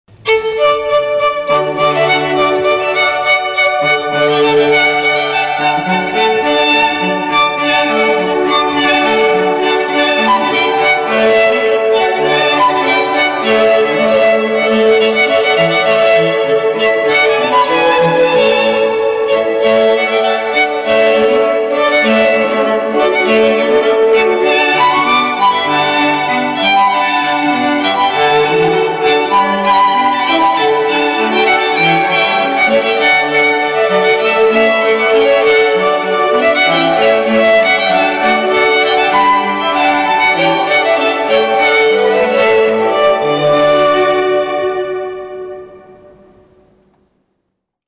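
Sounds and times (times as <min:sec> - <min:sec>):
string quartet playing: 0:00.1 - 0:47.0.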